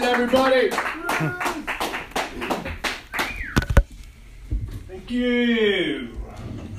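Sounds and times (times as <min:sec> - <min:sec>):
audience clapping: 0:00.0 - 0:03.7
speech: 0:00.2 - 0:01.6, 0:05.1 - 0:06.1.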